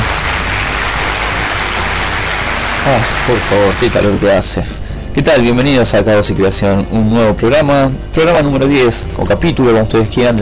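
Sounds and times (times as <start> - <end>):
applause: 0.0 - 4.3
speech: 2.9 - 10.4.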